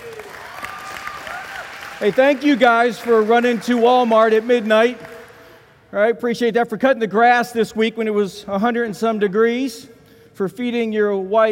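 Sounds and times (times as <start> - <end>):
audience applause: 0.0 - 5.5
speech: 2.0 - 5.1, 5.9 - 11.5.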